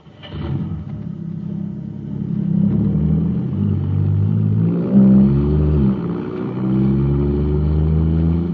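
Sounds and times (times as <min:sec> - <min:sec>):
supercharged car engine revving and accelerating: 0:00.0 - 0:08.5.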